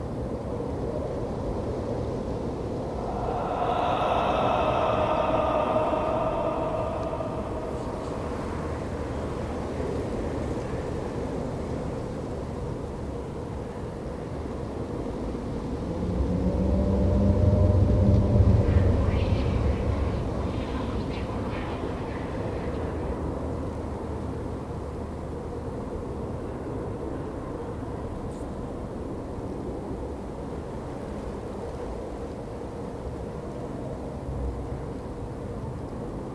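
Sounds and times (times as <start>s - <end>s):
nether ambience: 0.0s - 36.3s.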